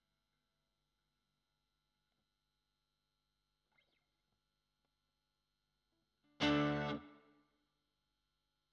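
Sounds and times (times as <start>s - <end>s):
guitar: 6.2s - 7.5s.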